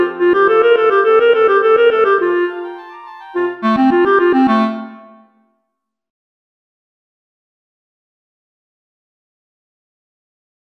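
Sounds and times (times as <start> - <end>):
clarinet: 0.0 - 5.5.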